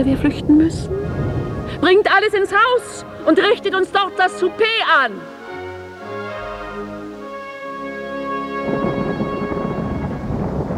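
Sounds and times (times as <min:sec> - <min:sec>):
thunder rumble: 0:00.0 - 0:04.4, 0:08.5 - 0:10.7
speech: 0:00.0 - 0:05.3.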